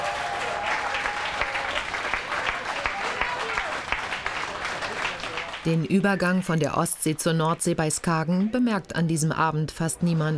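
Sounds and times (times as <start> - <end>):
audience applause: 0.0 - 6.4
speech: 5.6 - 10.3.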